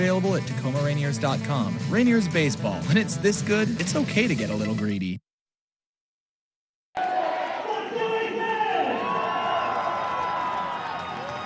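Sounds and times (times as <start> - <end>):
speech: 0.0 - 5.2
large baseball stadium crowd roaring: 7.0 - 11.4
people shouting and whooping: 7.0 - 11.4.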